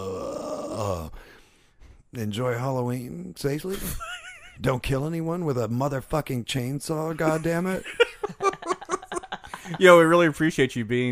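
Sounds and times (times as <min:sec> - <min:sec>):
person imitating zombie noises: 0:00.0 - 0:01.2
speech: 0:00.8 - 0:01.4, 0:02.1 - 0:08.4, 0:09.7 - 0:11.1
laughter: 0:07.2 - 0:10.3.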